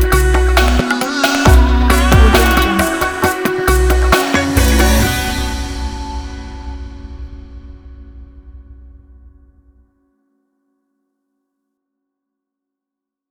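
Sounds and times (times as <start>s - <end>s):
trap beat: 0.0s - 5.2s.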